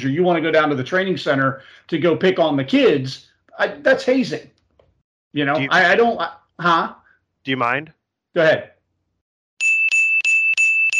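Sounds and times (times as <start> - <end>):
speech: 0.0 - 4.6, 5.3 - 8.7
bell ringing: 9.6 - 10.9.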